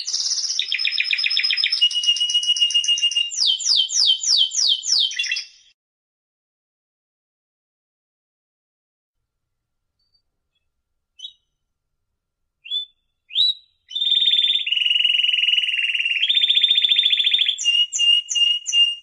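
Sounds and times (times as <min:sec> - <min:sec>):
canary song: 0:00.0 - 0:05.8, 0:10.0 - 0:11.6, 0:12.6 - 0:19.0.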